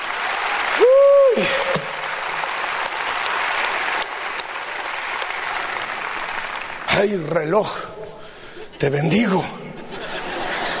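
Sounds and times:
audience applauding loudly: 0.0 - 7.5
whoop or whistle: 0.7 - 1.8
speech: 7.0 - 7.9, 8.8 - 9.6
laughter: 8.5 - 10.7.

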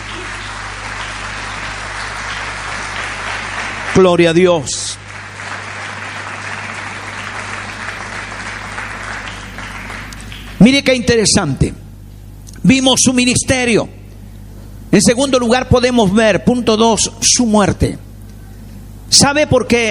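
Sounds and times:
audience applauding: 0.0 - 11.0
speech: 4.0 - 5.0, 10.6 - 11.8, 12.6 - 14.0, 14.9 - 18.1, 19.1 - 19.8.

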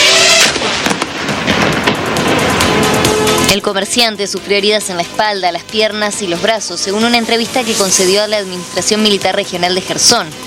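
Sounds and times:
drone motor buzzing: 0.0 - 0.6
drone exploding on a car: 0.0 - 3.5
crackling popping bursts: 0.0 - 10.4
speech: 3.5 - 10.4.

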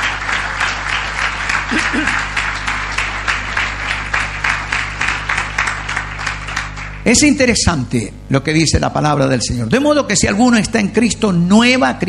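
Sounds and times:
audience applause: 0.0 - 7.3
low voice murmur: 1.7 - 2.4
speech: 7.1 - 12.0.

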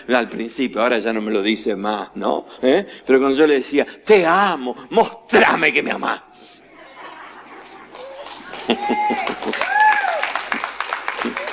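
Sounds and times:
speech: 0.0 - 6.6, 8.7 - 9.8
laughter: 6.6 - 9.9
audience applause, mostly women clapping: 7.9 - 11.5.

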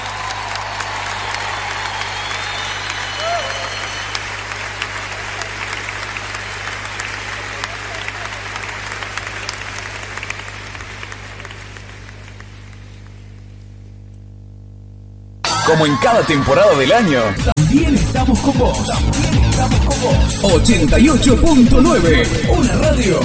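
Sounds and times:
audience applause: 0.0 - 13.4
speech: 15.7 - 23.2.

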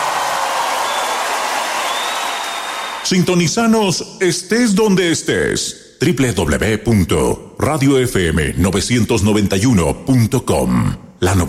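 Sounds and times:
crowd applause: 0.0 - 3.1
speech: 3.1 - 11.4.

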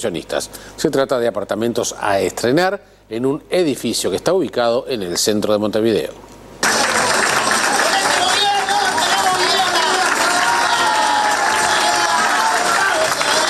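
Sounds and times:
speech: 0.0 - 6.4
crowd applause at a ceremony: 6.6 - 13.4
excited voices cheering at a ceremony: 6.6 - 13.4.

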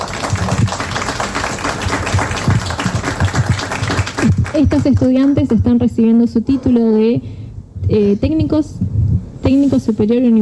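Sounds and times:
applause for graduating students: 0.0 - 5.0
speech: 4.6 - 8.8, 9.5 - 10.4.

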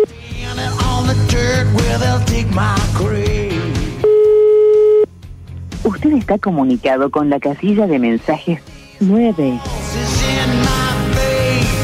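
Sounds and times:
loud music: 0.1 - 4.0, 5.8 - 11.8
speech: 1.1 - 3.4, 6.0 - 10.2
telephone ringback tone while waiting for an answer: 4.0 - 5.1.

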